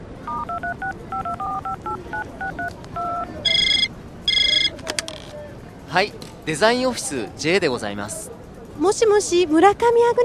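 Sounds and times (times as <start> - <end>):
bright electronic telephone ringing tone: 0.3 - 4.8
two-tone phone keypad beeps: 0.3 - 4.8
speech: 5.9 - 10.2.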